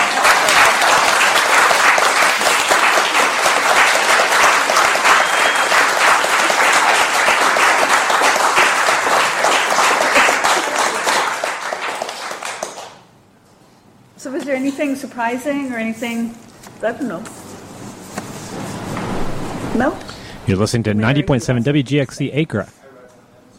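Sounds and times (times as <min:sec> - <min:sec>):
audience applause: 0:00.0 - 0:13.1
speech: 0:14.8 - 0:17.4, 0:19.8 - 0:22.8.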